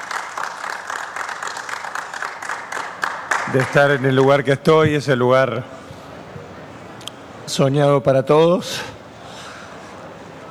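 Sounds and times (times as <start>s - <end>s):
applause in a press conference room: 0.0s - 4.7s
speech: 3.5s - 5.8s, 7.5s - 9.0s.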